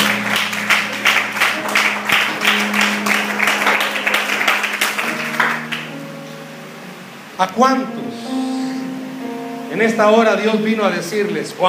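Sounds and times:
audience applause: 0:00.0 - 0:06.0
speech: 0:07.4 - 0:08.0, 0:09.8 - 0:11.6.

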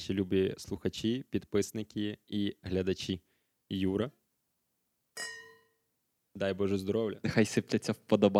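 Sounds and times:
speech: 0:00.0 - 0:04.2, 0:06.4 - 0:08.3
wine glasses clinking in a toast: 0:05.2 - 0:05.8.

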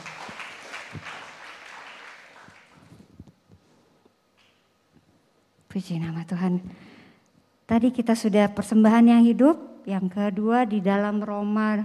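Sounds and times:
crowd applauding: 0:00.0 - 0:03.0
speech: 0:05.8 - 0:06.9, 0:07.7 - 0:11.8.

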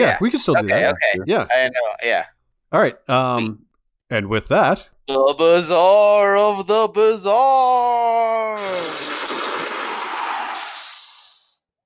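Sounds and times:
speech: 0:00.0 - 0:09.3
smoke sound effect: 0:08.6 - 0:11.6.

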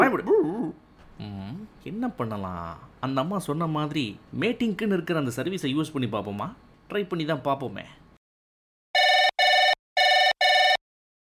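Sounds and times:
speech: 0:00.1 - 0:08.0
telephone ringing with electronic tones: 0:09.0 - 0:10.8.

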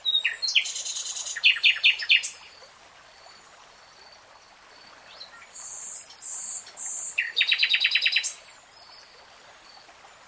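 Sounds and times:
nightingale singing: 0:00.0 - 0:02.4, 0:05.1 - 0:08.4.

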